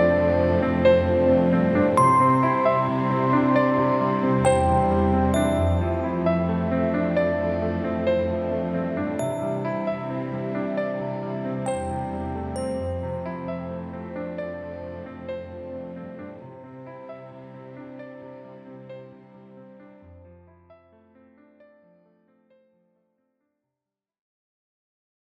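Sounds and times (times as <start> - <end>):
atmosphere: 0.0 - 18.9.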